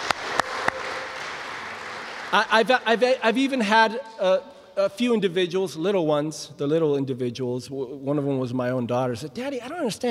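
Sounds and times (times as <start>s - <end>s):
audience applause: 0.0s - 3.5s
speech: 2.3s - 10.0s.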